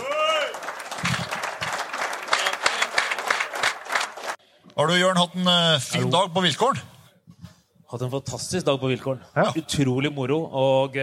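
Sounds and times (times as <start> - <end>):
audience applause: 0.0 - 4.4
speech: 4.8 - 6.9, 7.9 - 11.0.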